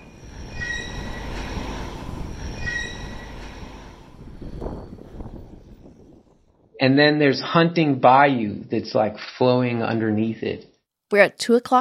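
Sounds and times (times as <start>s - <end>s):
rail cars squealing in a switching yard: 0.0s - 6.6s
speech: 6.8s - 11.7s.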